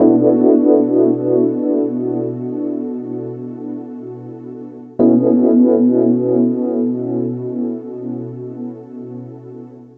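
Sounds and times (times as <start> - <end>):
electric piano loop: 0.0 - 9.3.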